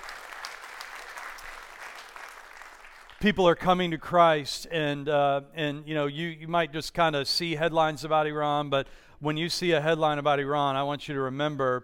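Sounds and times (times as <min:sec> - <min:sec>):
audience applause: 0:00.0 - 0:03.2
speech: 0:03.2 - 0:11.8.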